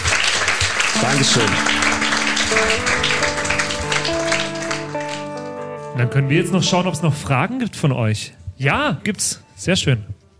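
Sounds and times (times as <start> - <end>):
applause: 0.0 - 5.9
speech: 1.0 - 1.9, 2.5 - 3.3, 6.0 - 10.2.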